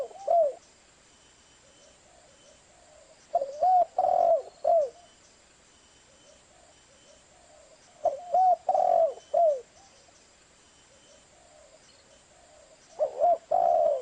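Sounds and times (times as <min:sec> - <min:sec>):
spotted dove cooing: 0:00.0 - 0:00.6, 0:01.6 - 0:05.1, 0:06.1 - 0:10.0, 0:10.9 - 0:14.0.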